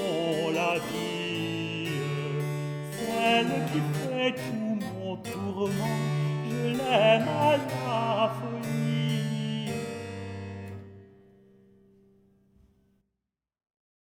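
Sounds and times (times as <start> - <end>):
tenor singing a baroque couplet: 0.0 - 11.0.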